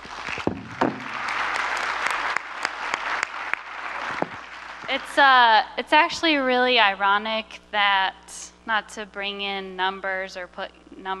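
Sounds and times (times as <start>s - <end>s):
audience applause: 0.0s - 5.2s
speech: 4.9s - 11.1s.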